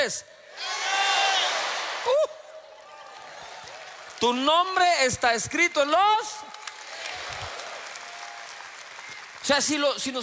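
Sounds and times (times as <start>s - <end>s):
speech: 0.0s - 0.7s, 4.2s - 6.6s, 9.5s - 10.2s
audience shouting together: 0.6s - 2.1s.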